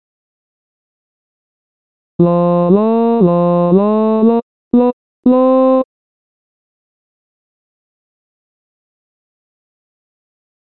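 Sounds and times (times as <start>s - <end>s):
bass: 2.2s - 5.9s.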